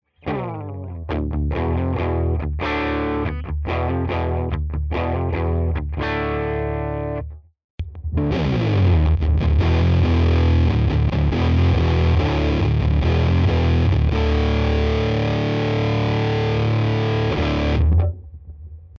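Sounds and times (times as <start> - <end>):
fuzz effect switching on and off: 0.1 - 18.9.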